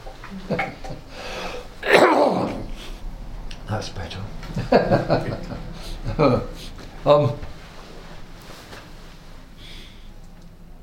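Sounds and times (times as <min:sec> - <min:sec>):
speech: 0:00.3 - 0:00.7, 0:03.8 - 0:04.1, 0:04.7 - 0:05.4, 0:06.2 - 0:06.5, 0:07.1 - 0:07.4
person coughing: 0:01.8 - 0:02.8
laughter: 0:04.4 - 0:07.4.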